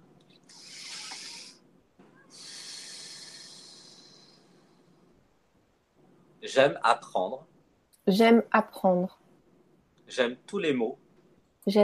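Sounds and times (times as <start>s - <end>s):
deep breathing exercise: 0.4s - 1.6s, 2.2s - 5.3s
speech: 6.4s - 9.2s, 10.1s - 11.0s, 11.6s - 11.8s.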